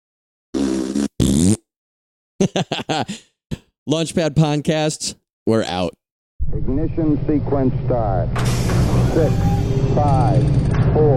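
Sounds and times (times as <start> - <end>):
people blowing raspberries with their lips: 0.6 - 1.6
laughter: 2.4 - 3.2
speech: 2.4 - 3.3, 3.9 - 11.1.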